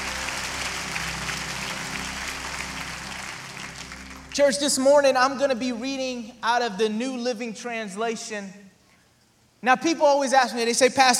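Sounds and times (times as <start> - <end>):
audience applauding: 0.0 - 5.1
speech: 4.4 - 8.6, 9.6 - 11.1.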